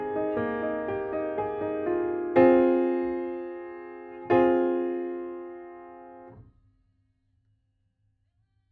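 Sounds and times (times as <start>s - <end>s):
piano: 0.0s - 6.5s.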